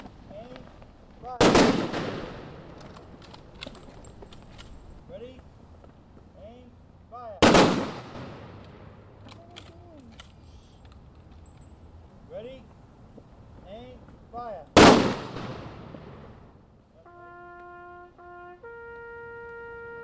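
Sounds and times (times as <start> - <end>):
ceremonial rifle volley blasts: 1.4 - 3.5, 7.4 - 9.3, 14.8 - 16.6.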